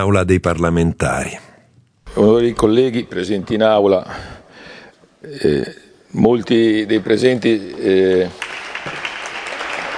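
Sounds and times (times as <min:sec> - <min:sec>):
speech: 0:00.0 - 0:01.5, 0:02.1 - 0:04.4, 0:05.2 - 0:09.0
applause in parliament chamber: 0:07.2 - 0:09.9.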